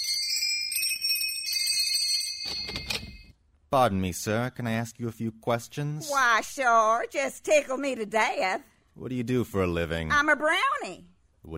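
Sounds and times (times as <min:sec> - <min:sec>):
doorbell ringing: 0:00.0 - 0:03.4
speech: 0:03.7 - 0:11.5.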